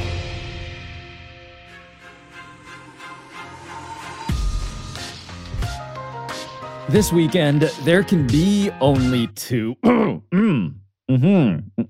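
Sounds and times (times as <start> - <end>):
speech: 6.9 - 11.8
throat clearing: 9.8 - 10.8.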